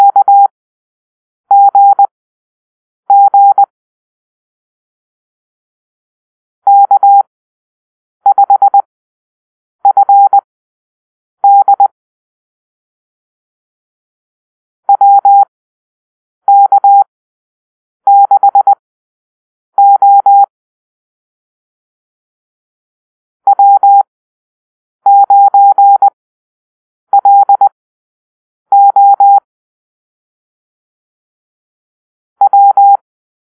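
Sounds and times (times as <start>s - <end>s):
morse code call-sign drill: 0.0s - 0.5s, 1.5s - 2.1s, 3.1s - 3.7s, 6.7s - 7.3s, 8.3s - 8.9s, 9.8s - 10.4s, 11.4s - 11.9s, 14.9s - 15.5s, 16.5s - 17.1s, 18.1s - 18.8s, 19.8s - 20.5s, 23.5s - 24.1s, 25.1s - 26.2s, 27.1s - 27.8s, 28.7s - 29.5s, 32.4s - 33.0s.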